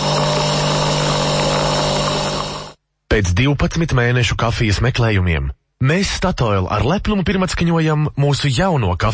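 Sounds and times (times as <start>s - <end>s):
old coffee vending machine running: 0.0s - 2.8s
speech: 3.2s - 9.1s.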